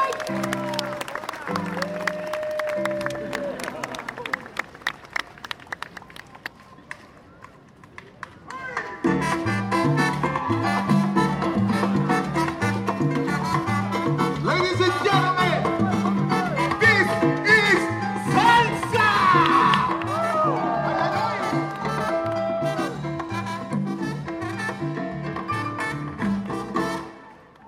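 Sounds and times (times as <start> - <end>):
jazz festival music: 0.1 - 3.6, 9.0 - 27.3.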